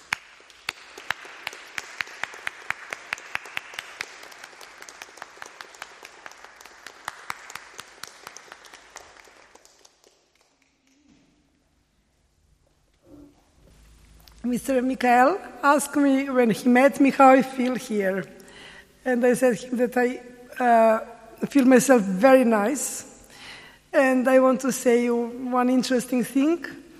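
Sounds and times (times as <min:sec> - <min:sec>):
audience applause: 0:00.0 - 0:11.0
speech: 0:14.5 - 0:18.4, 0:19.0 - 0:23.1, 0:24.0 - 0:26.8.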